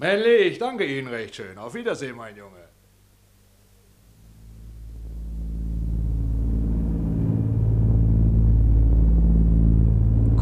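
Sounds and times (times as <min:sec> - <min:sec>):
speech: 0:00.0 - 0:02.8
airplane engines droning in flight: 0:04.2 - 0:10.3.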